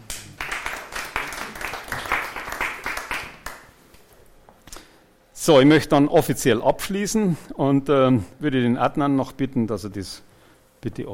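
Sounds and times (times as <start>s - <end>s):
applause: 0.0s - 3.8s
speech: 5.5s - 11.1s.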